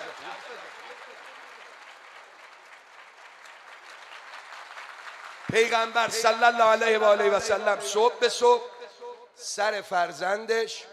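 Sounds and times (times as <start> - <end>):
audience clapping at a gathering: 0.0 - 7.2
speech: 5.5 - 8.7, 9.4 - 10.9.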